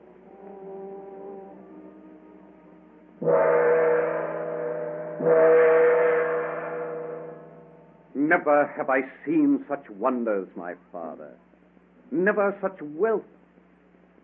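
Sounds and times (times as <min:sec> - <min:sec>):
large gong struck with a sword: 0:03.2 - 0:08.2
speech: 0:05.2 - 0:05.6, 0:08.3 - 0:11.5, 0:12.1 - 0:13.4.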